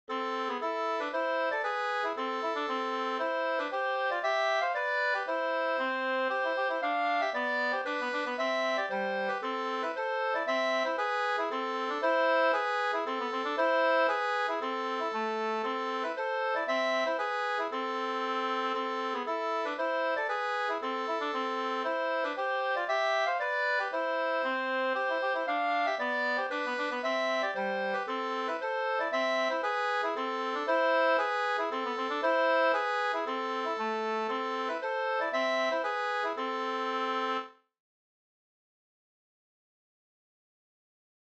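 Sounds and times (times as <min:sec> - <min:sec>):
polska dance tune: 0:00.1 - 0:37.5.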